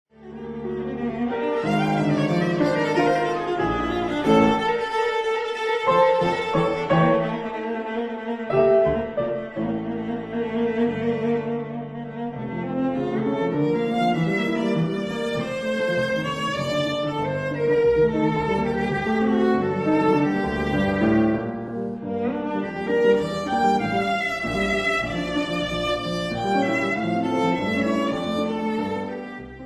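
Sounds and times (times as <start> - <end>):
lively fast viola and piano piece: 0.1 - 29.6.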